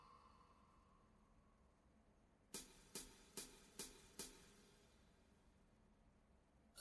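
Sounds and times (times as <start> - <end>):
traps drum kit accompaniment: 2.6 - 4.6.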